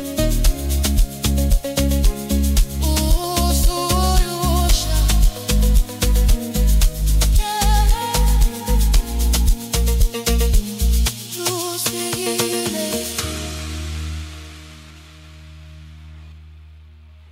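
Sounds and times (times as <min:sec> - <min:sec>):
soulful amapiano and Afrobeats music with saxophone: 0:00.0 - 0:13.8.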